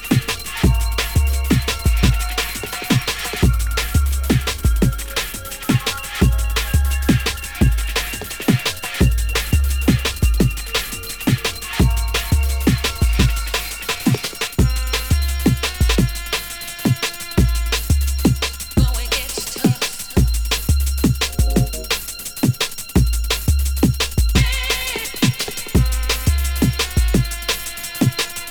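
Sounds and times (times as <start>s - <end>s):
trap music mix: 0.0s - 28.4s.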